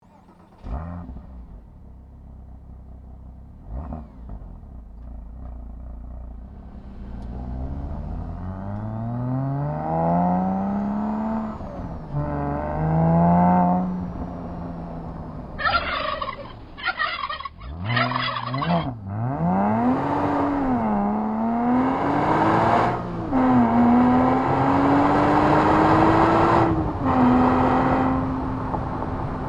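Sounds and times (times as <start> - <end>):
Porsche Cayman S engine: 0.0 - 29.4.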